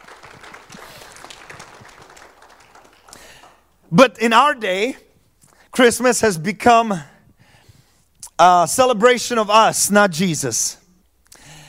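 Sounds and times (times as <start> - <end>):
audience clapping hands: 0.0 - 3.9
speech: 3.9 - 5.0, 5.8 - 7.1, 8.4 - 10.8.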